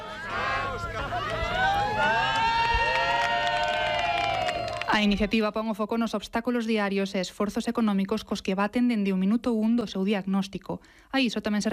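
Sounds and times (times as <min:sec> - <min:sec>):
crowd cheering and applauding outdoors: 0:00.0 - 0:05.3
speech: 0:05.0 - 0:11.7.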